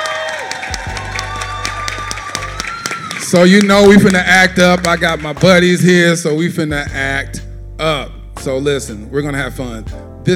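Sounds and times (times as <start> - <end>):
live audience clapping and cheering at a talk show taping: 0.0 - 6.1
speech: 3.3 - 10.3.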